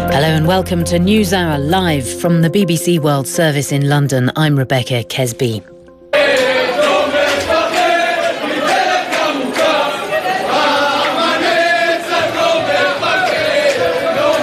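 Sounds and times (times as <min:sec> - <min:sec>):
speech: 0:00.2 - 0:05.7
jubilant crowd singing and cheering at Ben Gurion Airport, Tel Aviv: 0:06.1 - 0:14.4.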